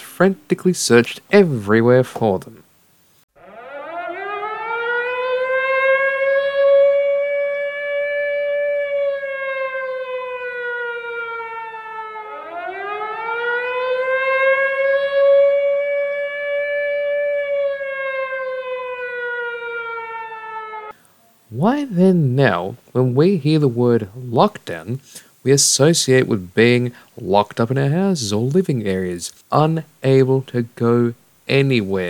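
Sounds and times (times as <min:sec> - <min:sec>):
speech: 0:00.2 - 0:02.7, 0:21.6 - 0:32.0
loud wailing alarm siren: 0:03.3 - 0:21.8.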